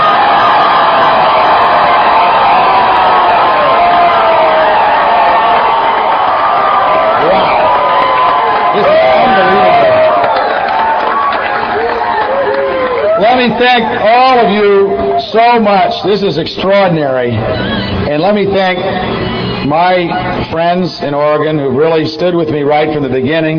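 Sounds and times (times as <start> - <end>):
whoops and shouts: 0.0 - 15.3
large campaign rally crowd cheering: 0.0 - 20.5
speech: 13.6 - 23.5.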